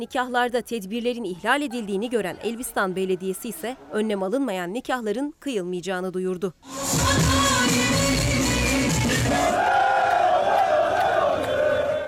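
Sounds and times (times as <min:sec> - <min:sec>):
speech: 0:00.0 - 0:08.4
crowd celebrating in the streets: 0:06.8 - 0:12.0.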